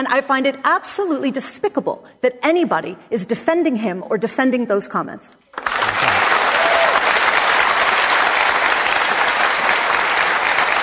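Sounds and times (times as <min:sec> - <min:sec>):
speech: 0:00.0 - 0:05.7
audience applause: 0:05.6 - 0:10.8.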